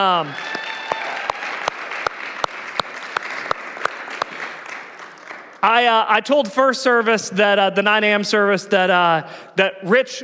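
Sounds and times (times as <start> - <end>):
speech: 0.0 - 0.5, 5.6 - 10.2
audience applause: 0.0 - 5.6.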